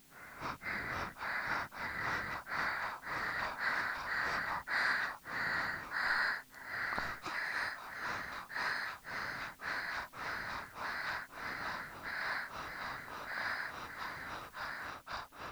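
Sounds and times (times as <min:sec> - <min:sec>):
two people breathing: 0:00.0 - 0:15.5.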